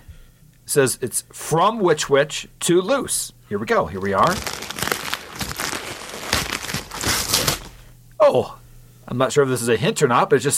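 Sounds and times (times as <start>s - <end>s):
speech: 0.7s - 4.6s, 8.3s - 10.5s
gift package paper crinkling and crumpling: 4.0s - 7.9s.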